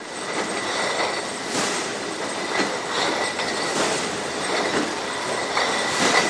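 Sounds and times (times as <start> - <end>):
factory bottling plant machinery: 0.0 - 6.2.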